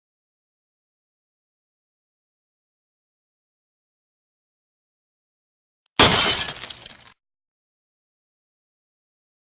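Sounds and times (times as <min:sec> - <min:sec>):
glass breaking: 0:06.0 - 0:07.2.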